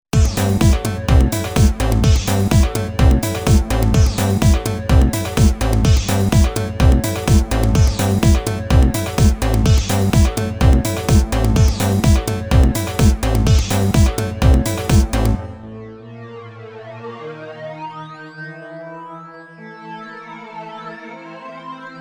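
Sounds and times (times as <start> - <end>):
house music: 0.0 - 15.8.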